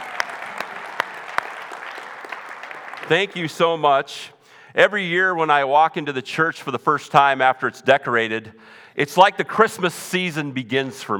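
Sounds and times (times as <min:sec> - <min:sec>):
audience applause in a church: 0:00.0 - 0:03.8
speech: 0:03.1 - 0:11.1.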